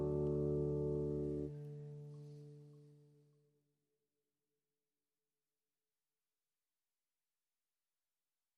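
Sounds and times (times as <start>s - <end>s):
easy guitar playing: 0.0s - 3.2s.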